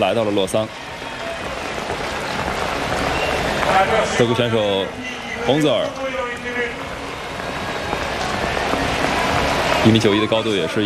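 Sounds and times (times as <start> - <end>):
speech: 0.0 - 0.9, 3.7 - 6.0, 9.8 - 10.8
steady rain falling on an outdoor athletics stadium in Lausanne: 0.0 - 10.8.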